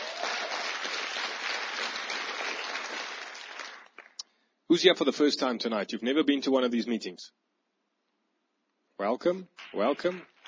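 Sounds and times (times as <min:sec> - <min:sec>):
church meeting audience applause after worship: 0:00.0 - 0:04.2, 0:09.6 - 0:10.4
speech: 0:04.7 - 0:07.4, 0:09.0 - 0:10.3.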